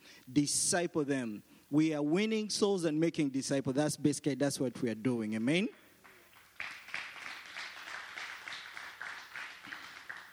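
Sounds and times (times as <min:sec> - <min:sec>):
speech: 0:00.3 - 0:05.8
audience clapping: 0:05.8 - 0:10.3.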